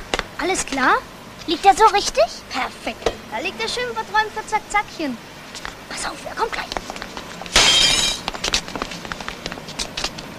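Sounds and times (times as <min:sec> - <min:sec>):
speech: 0:00.4 - 0:07.0
window pane shattering, broken by a football: 0:07.5 - 0:08.2.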